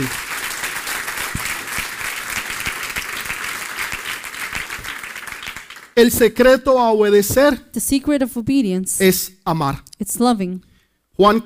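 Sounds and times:
audience applause: 0.0s - 6.0s
speech: 6.0s - 11.4s.

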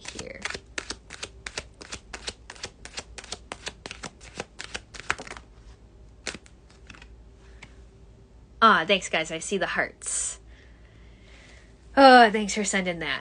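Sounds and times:
tarot cards being shuffled and drawn: 0.0s - 7.8s
speech: 8.6s - 10.2s, 12.0s - 13.2s.

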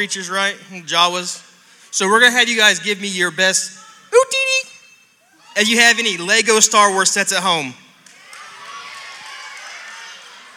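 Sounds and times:
speech: 0.0s - 4.6s, 5.6s - 7.8s
children cheering: 8.0s - 10.5s.

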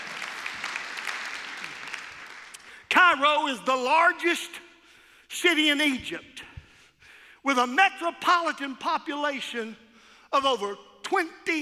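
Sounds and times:
congregation clapping in praise during a church service: 0.0s - 2.8s
speech: 3.1s - 4.6s, 5.3s - 6.4s, 7.4s - 11.6s.

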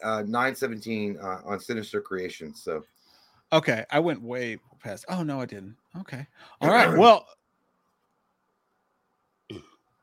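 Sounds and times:
speech: 0.0s - 7.4s, 9.5s - 9.7s
burp: 9.5s - 9.8s.

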